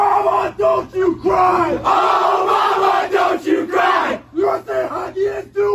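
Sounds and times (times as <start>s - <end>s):
hockey team of young men chanting in unison in a locker room: 0.2s - 5.7s.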